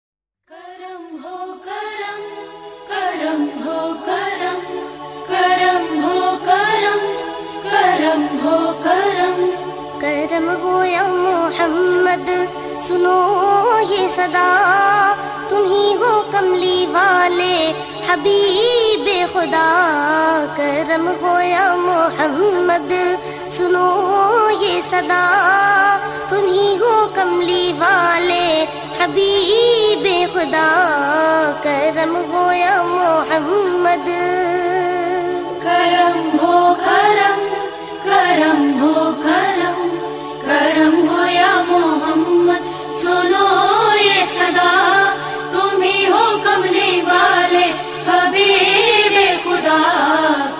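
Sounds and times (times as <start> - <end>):
naat ringtone: 0.5 - 50.5.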